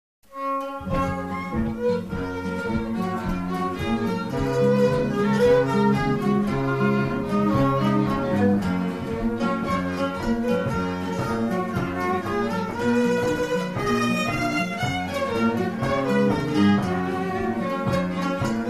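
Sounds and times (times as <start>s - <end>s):
polka music: 0.3s - 18.6s.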